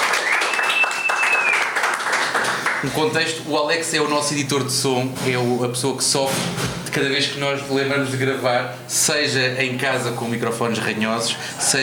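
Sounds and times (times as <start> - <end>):
audience applause: 0.0 - 3.0
speech: 2.8 - 11.8.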